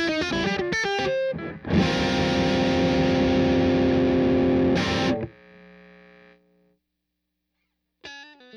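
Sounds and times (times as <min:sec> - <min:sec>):
electric guitar with P90 pickup through Marshall amplifier: 0:00.0 - 0:05.7.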